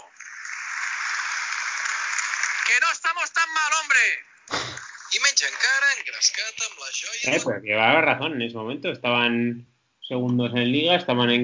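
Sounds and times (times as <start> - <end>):
large crowd standing ovation applause: 0.0 - 6.0
speech: 2.7 - 11.4.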